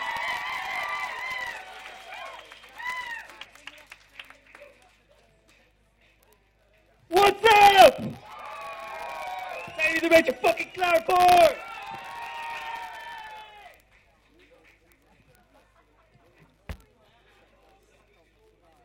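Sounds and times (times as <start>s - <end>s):
loud applause: 0.0s - 5.0s, 7.1s - 13.9s
speech: 10.1s - 11.6s.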